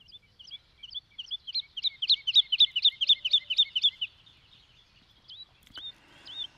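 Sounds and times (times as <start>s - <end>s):
woodlark singing: 0.0s - 6.5s.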